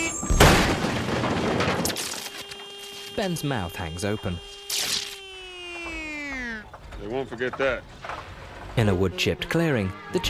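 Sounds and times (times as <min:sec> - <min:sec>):
bus crashing into the side of a cabin: 0:00.0 - 0:02.6
speech: 0:03.2 - 0:04.6, 0:07.0 - 0:08.0, 0:08.8 - 0:10.2.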